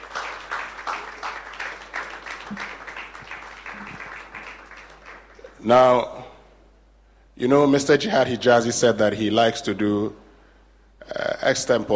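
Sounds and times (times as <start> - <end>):
audience round of applause: 0.0 - 5.6
speech: 5.6 - 6.2, 7.4 - 10.2, 11.4 - 11.9.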